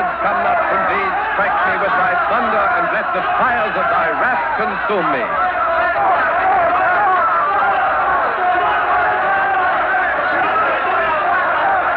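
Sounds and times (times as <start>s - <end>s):
angry crowd shouting in a square: 0.0s - 11.9s
speech: 3.0s - 6.0s.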